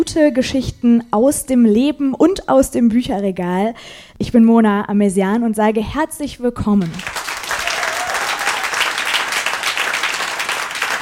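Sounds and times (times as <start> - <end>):
speech: 0.0 - 7.2
audience applause: 6.8 - 11.0.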